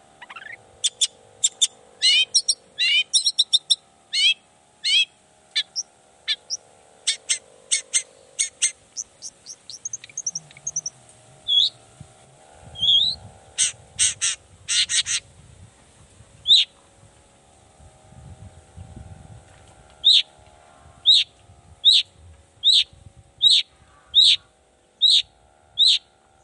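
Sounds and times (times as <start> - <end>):
steady low hum: 0.0 - 26.4
Long-tailed shrike song of sharp chirps and rasping buzzy phrases: 0.2 - 11.8, 12.7 - 15.2, 16.4 - 16.8, 20.0 - 20.3, 21.0 - 26.4.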